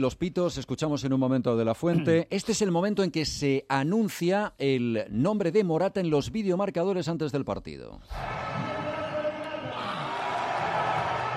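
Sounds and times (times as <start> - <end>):
speech: 0.0 - 8.8
stadium crowd applause before match: 8.2 - 11.3.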